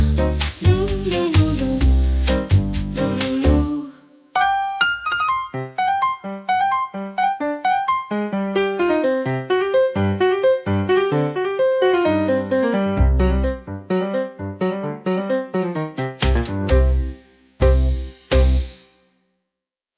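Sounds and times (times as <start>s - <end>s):
jazz drums: 0.0s - 3.7s, 16.0s - 19.0s
jazz bass: 0.0s - 3.8s, 12.3s - 13.9s, 16.0s - 18.8s
upbeat jazz piano: 0.0s - 19.0s.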